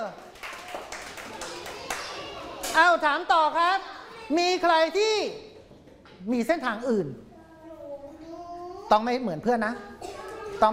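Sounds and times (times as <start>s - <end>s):
class of students clapping hands in a classroom: 0.1s - 2.8s
speech: 2.8s - 5.5s, 6.2s - 7.2s, 8.9s - 9.9s, 10.6s - 10.7s.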